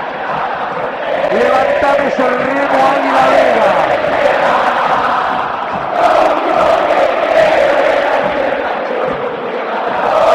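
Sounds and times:
River stadium crowd shouting: 0:00.0 - 0:10.3.

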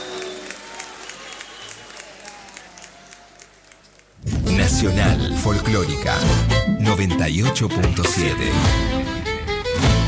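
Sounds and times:
audience applause: 0:00.0 - 0:04.2
speech: 0:04.7 - 0:09.0.

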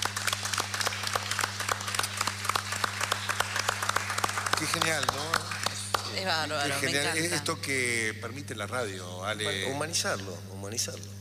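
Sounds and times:
applause: 0:00.0 - 0:07.3
speech: 0:04.6 - 0:05.5, 0:06.1 - 0:11.2.

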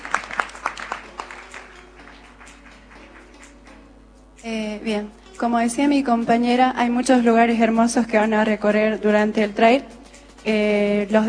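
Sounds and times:
scattered audience claps: 0:00.0 - 0:03.9
speech: 0:04.4 - 0:11.2.

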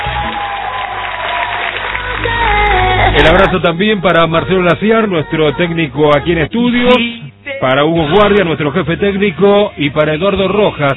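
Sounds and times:
group applause: 0:00.0 - 0:03.0
speech: 0:03.2 - 0:10.9.

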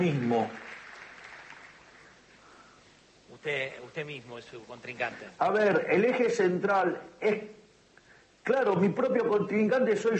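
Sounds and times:
speech: 0:00.0 - 0:00.6, 0:03.4 - 0:07.6, 0:08.4 - 0:10.1
audience applause: 0:00.0 - 0:02.4.

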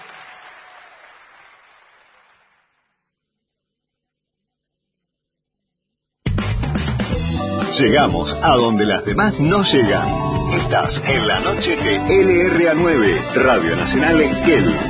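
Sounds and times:
crowd applause: 0:00.0 - 0:03.0
loud music: 0:06.3 - 0:14.8
speech: 0:07.7 - 0:14.8.

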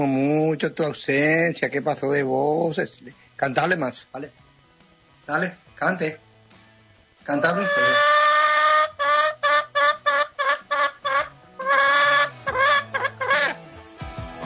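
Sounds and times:
speech: 0:00.0 - 0:04.4, 0:05.3 - 0:06.2, 0:07.2 - 0:08.1
hen clucking: 0:07.3 - 0:13.6.

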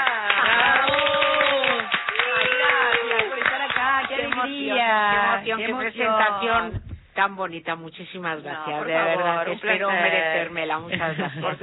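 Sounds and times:
audience applause: 0:00.0 - 0:04.6
speech: 0:05.4 - 0:11.6.

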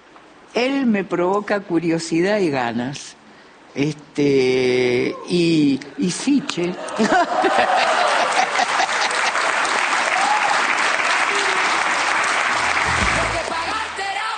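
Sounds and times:
speech: 0:00.6 - 0:03.2, 0:03.8 - 0:07.9
laughter: 0:06.8 - 0:09.7
audience applause: 0:07.4 - 0:14.3.

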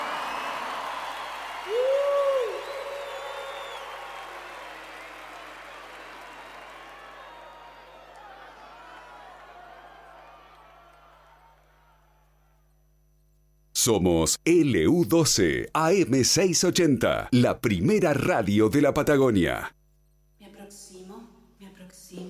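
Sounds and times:
crowd applauding: 0:00.0 - 0:12.6
sharp whistle: 0:00.3 - 0:04.5
speech: 0:13.8 - 0:19.8.

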